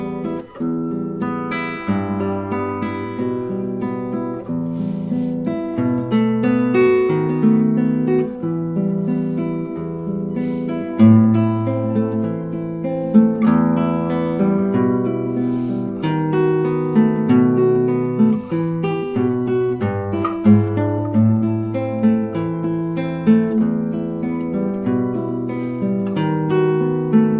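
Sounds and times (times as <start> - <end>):
standard solo guitar: 0.0 - 27.3.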